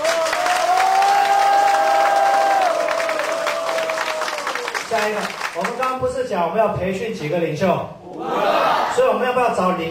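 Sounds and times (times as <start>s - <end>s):
audience applause: 0.0s - 5.8s
speech: 4.9s - 9.9s.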